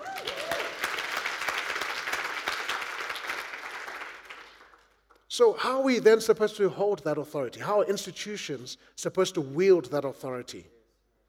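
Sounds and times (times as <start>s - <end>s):
brief cheer: 0.0s - 0.9s
crowd clapping: 0.0s - 5.3s
speech: 5.4s - 10.8s.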